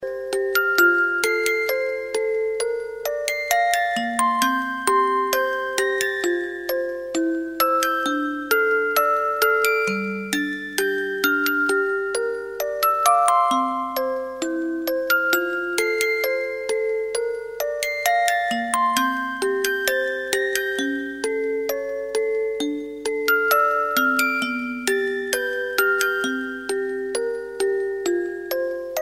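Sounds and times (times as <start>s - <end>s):
music box: 0.0s - 29.0s.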